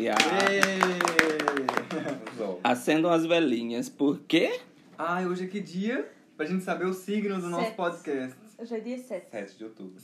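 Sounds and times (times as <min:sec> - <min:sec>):
speech: 0:00.0 - 0:00.9, 0:02.7 - 0:10.0
hands clapping: 0:00.0 - 0:02.5.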